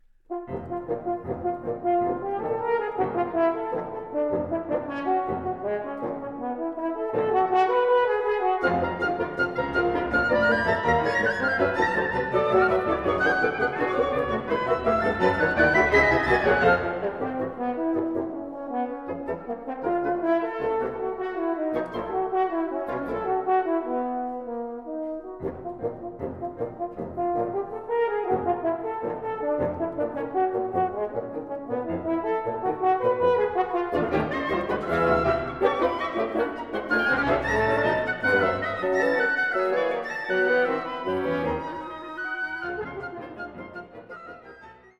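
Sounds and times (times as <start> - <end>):
horn and orchestra concerto: 0.3 - 44.9.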